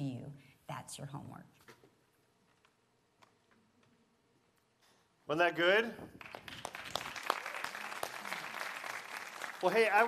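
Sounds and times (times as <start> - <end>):
speech: 0.8 - 1.8, 5.3 - 6.4, 9.6 - 10.0
applause and cheering: 6.1 - 10.0.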